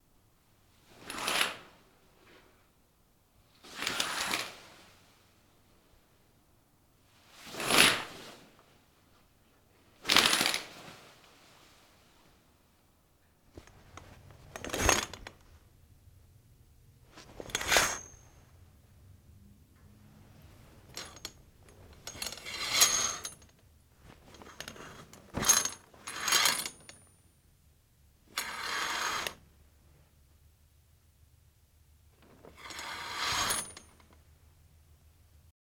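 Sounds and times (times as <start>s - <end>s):
curtain opening and closing: 0.8s - 2.5s, 3.6s - 5.3s, 7.1s - 8.8s, 10.0s - 12.4s, 13.5s - 15.5s, 17.1s - 18.5s, 20.4s - 27.0s, 28.3s - 29.4s, 32.2s - 34.2s.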